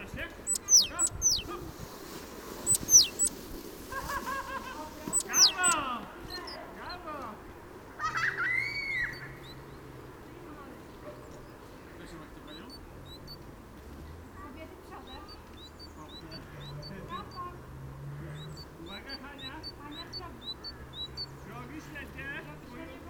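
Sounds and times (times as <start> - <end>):
great tit repeating two-note phrases: 0.0 - 7.9, 8.7 - 13.8, 14.5 - 23.0
laughter: 3.9 - 5.8, 7.9 - 9.4.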